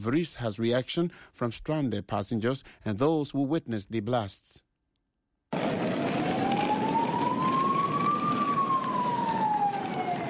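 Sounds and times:
speech: 0.0s - 4.6s
emergency vehicle siren wailing on city streets: 5.6s - 10.2s
street traffic rumble: 5.6s - 10.2s.

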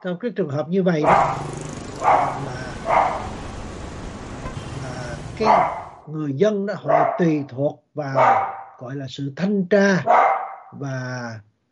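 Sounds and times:
speech: 0.0s - 3.1s, 5.4s - 11.5s
dog barking at home: 1.0s - 3.5s, 5.4s - 5.9s, 6.8s - 7.4s, 8.1s - 8.7s, 10.0s - 10.7s.

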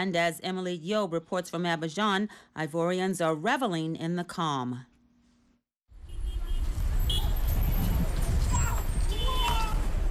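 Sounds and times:
speech: 0.0s - 4.9s
car horns honking in Abidjan streets: 6.0s - 7.8s, 8.6s - 10.0s
vendors selling coffee by the side of the road: 6.1s - 10.0s.

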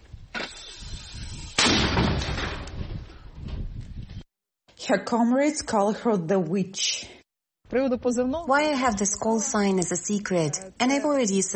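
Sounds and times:
mortar battery firing: 1.6s - 2.8s
speech: 4.9s - 11.5s.

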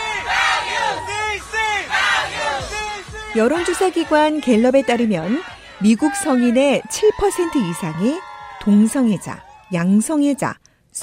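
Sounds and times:
parade crowd chanting slogans: 0.0s - 6.7s
speech: 3.4s - 11.0s.

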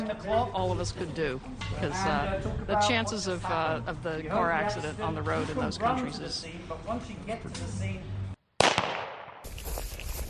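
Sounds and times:
speech: 0.1s - 8.2s
bullet whizzing just past: 8.6s - 9.5s.

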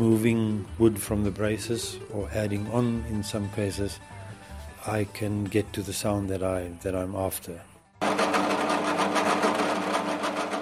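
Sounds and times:
speech: 0.0s - 4.2s, 4.8s - 8.2s
power drill in woodworking workshop: 8.0s - 10.5s.

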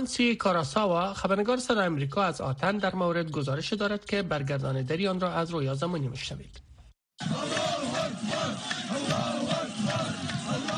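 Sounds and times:
speech: 0.0s - 10.1s
crowd shouting cries of joy: 7.2s - 10.7s.

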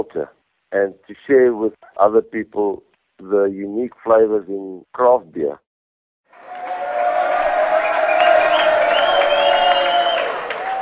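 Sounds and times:
speech: 0.0s - 5.6s
audience applause: 6.3s - 10.8s.

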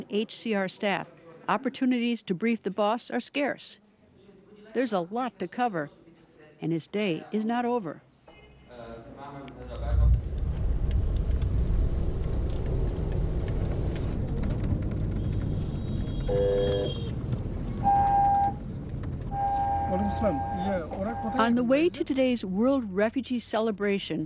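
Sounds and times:
speech: 0.0s - 3.8s, 4.7s - 6.0s, 6.6s - 8.1s, 16.3s - 17.0s, 19.9s - 24.2s
car driving along a road past a refugee camp: 10.2s - 21.4s.

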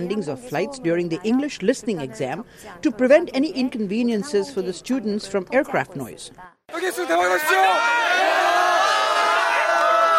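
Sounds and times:
speech: 0.0s - 8.5s
students shouting good-luck chants for exam takers: 6.7s - 10.1s.

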